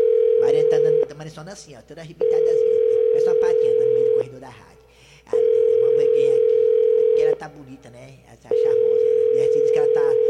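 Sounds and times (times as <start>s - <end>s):
telephone line dial tone: 0.0s - 1.1s, 2.2s - 4.2s, 5.4s - 7.4s, 8.6s - 10.2s
speech: 1.2s - 5.4s, 7.4s - 8.8s, 9.4s - 10.2s.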